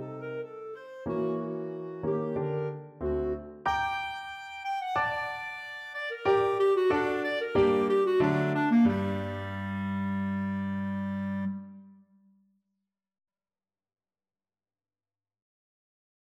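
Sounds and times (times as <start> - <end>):
piano: 0.0 - 12.0
clarinet: 0.0 - 12.1.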